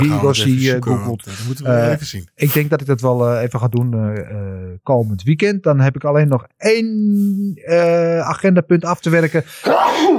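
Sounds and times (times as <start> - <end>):
speech: 0.0 - 10.1
loud sneeze: 9.6 - 10.1.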